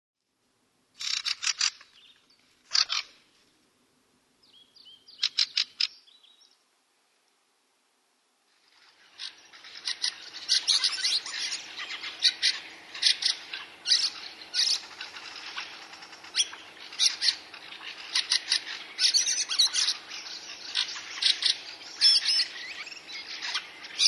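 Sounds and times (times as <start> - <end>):
fieldfare calls: 1.0 - 2.0, 2.7 - 3.2, 5.1 - 6.1, 8.8 - 24.0.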